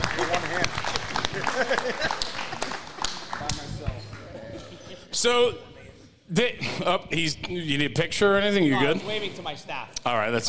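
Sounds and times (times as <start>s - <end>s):
laughter: 0.0s - 3.2s, 4.1s - 7.4s
audience applause: 0.0s - 3.9s
speech: 1.6s - 2.4s, 5.2s - 5.7s, 6.3s - 10.4s.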